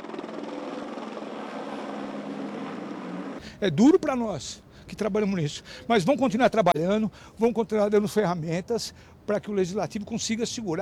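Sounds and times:
Polícia Civil Pelicano police helicopter flying over a cemetery: 0:00.0 - 0:04.6
speech: 0:03.6 - 0:10.8.

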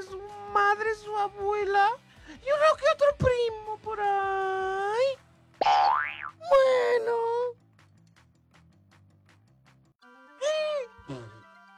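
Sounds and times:
speech: 0:00.0 - 0:07.6
person sneezing: 0:11.1 - 0:11.4.

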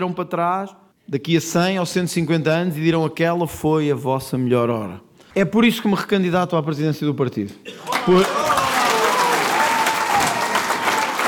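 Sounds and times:
speech: 0:00.0 - 0:08.7
audience applause: 0:07.8 - 0:11.2.

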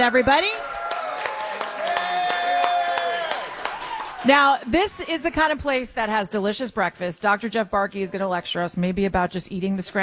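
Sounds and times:
speech: 0:00.0 - 0:00.7, 0:04.2 - 0:10.0
applause from diner audience: 0:00.1 - 0:04.8.

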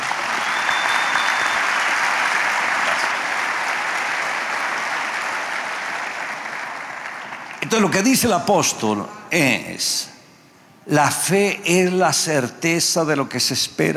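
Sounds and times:
crowd applauding: 0:00.0 - 0:08.0
speech: 0:07.7 - 0:10.1, 0:10.9 - 0:13.9.

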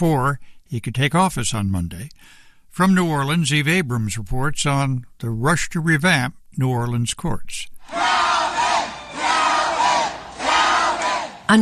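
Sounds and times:
speech: 0:00.0 - 0:07.7
exuberant crowd cheering at election celebration: 0:07.8 - 0:11.6.

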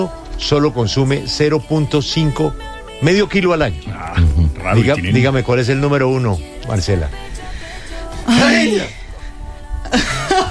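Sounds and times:
speech: 0:00.0 - 0:07.3, 0:08.3 - 0:09.0
person sneezing: 0:08.3 - 0:08.9.

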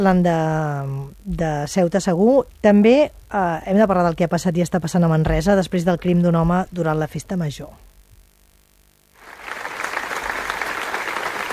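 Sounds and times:
speech: 0:00.0 - 0:07.9
crowd applauding at a memorial gathering in Manresa: 0:09.2 - 0:11.5.

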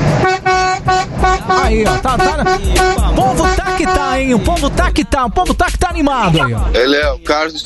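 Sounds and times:
car horns honking: 0:00.1 - 0:05.0
speech: 0:01.7 - 0:07.6.

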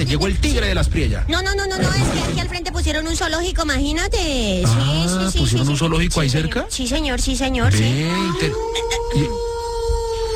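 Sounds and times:
speech: 0:00.0 - 0:09.5
wolf howling: 0:07.7 - 0:10.3.

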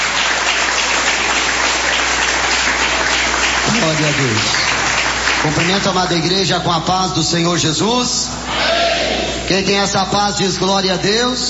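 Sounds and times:
applause from a large crowd: 0:00.0 - 0:06.4
speech: 0:03.8 - 0:04.8, 0:05.4 - 0:08.6, 0:09.5 - 0:11.4.

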